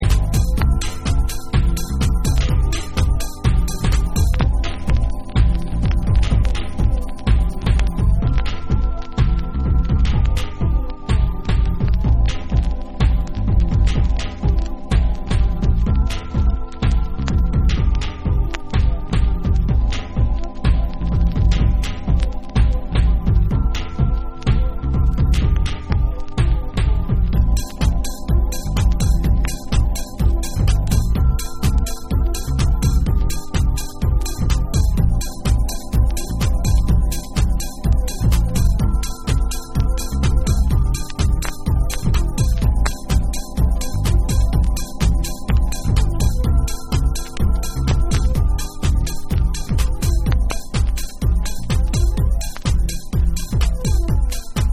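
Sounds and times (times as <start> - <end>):
dub music: 0.0 - 54.7.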